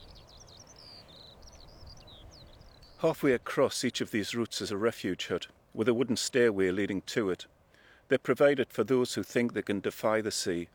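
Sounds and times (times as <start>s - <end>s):
skylarks singing over the Farne Islands: 0.0s - 3.7s
speech: 3.0s - 10.7s.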